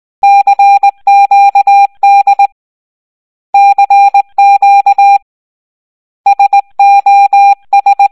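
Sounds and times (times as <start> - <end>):
morse code beeps: 0.2 - 2.6, 3.6 - 5.2, 6.3 - 8.1.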